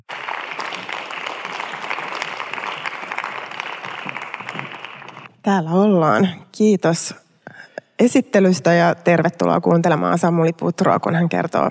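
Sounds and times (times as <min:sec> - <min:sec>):
warm audience applause: 0:00.0 - 0:05.3
speech: 0:05.4 - 0:07.2, 0:08.0 - 0:11.6.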